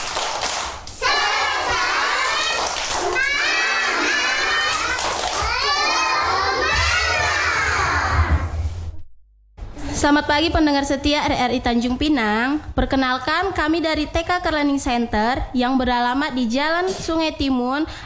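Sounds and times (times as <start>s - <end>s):
children's hand claps: 0.0s - 1.0s, 1.6s - 3.7s, 4.6s - 5.7s
young children chanting rhythmically: 1.0s - 8.5s
speech: 10.0s - 18.0s.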